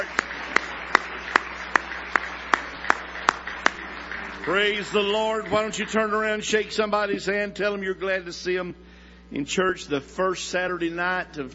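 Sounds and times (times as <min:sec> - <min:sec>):
church audience hand clapping: 0:00.0 - 0:06.9
speech: 0:04.4 - 0:11.5.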